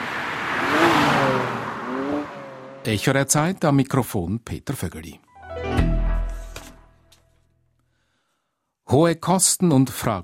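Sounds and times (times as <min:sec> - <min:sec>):
racing car engine revving at full throttle: 0:00.0 - 0:02.9
speech: 0:02.8 - 0:05.9, 0:09.0 - 0:10.2.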